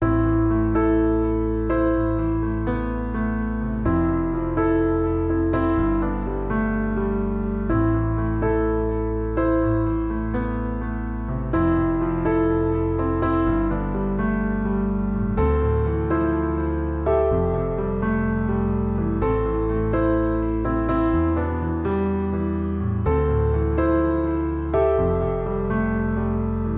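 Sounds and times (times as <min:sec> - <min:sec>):
piano: 0:00.0 - 0:26.7.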